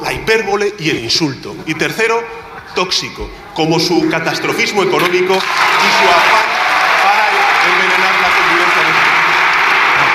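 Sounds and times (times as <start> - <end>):
speech: 0.3 - 6.6
loud applause from parliament benches: 5.3 - 10.1.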